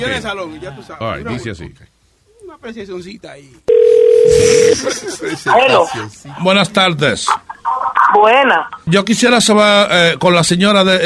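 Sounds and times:
speech: 0:00.0 - 0:11.0
telephone dial tone: 0:03.7 - 0:04.4
laughter: 0:04.4 - 0:06.4.

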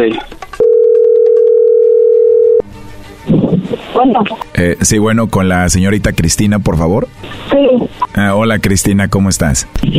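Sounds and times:
speech: 0:00.0 - 0:00.4, 0:04.0 - 0:09.9
telephone dial tone: 0:00.6 - 0:02.6.

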